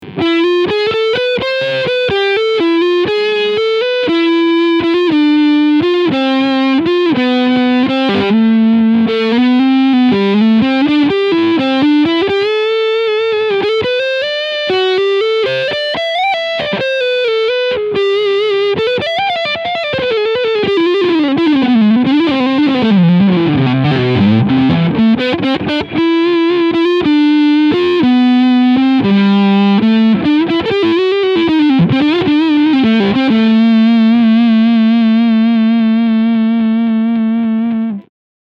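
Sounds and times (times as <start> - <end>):
overdriven guitar on front pickup: 0.0 - 38.1.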